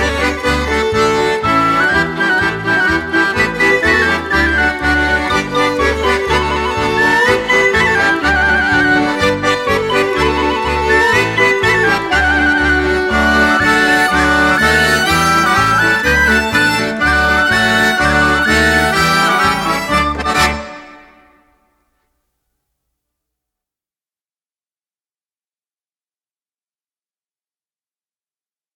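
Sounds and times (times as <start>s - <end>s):
recorder: 0.0s - 21.6s.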